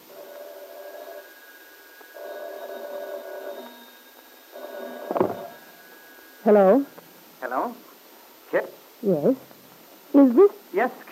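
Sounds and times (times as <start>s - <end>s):
telephone bell ringing insistently: 0.0s - 6.9s
speech: 6.4s - 6.9s, 7.5s - 7.9s, 8.5s - 9.5s, 10.1s - 11.0s.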